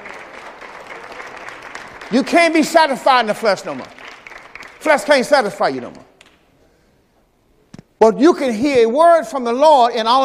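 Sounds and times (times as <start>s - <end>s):
crowd clapping: 0.0s - 6.4s
speech: 2.1s - 4.0s, 4.8s - 6.1s, 8.0s - 10.2s.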